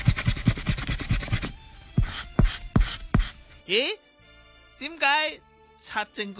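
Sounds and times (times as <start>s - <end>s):
eraser rubbing out pen writing on paper: 0.0s - 3.4s
speech: 3.7s - 4.0s, 4.8s - 6.3s.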